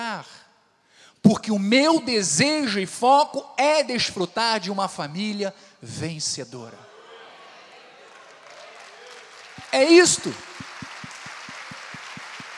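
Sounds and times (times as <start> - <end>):
speech: 1.2 - 6.9, 9.7 - 10.5
audience applauding: 8.0 - 12.5.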